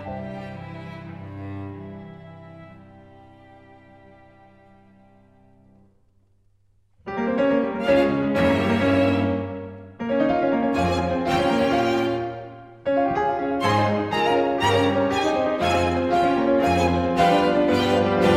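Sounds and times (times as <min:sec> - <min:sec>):
quintet playing: 0:07.1 - 0:18.3.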